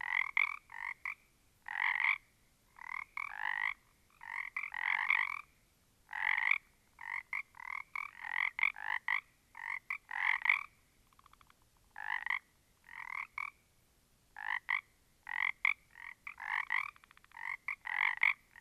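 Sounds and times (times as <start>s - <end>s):
small group of frogs: 0.0s - 13.7s, 14.4s - 18.5s.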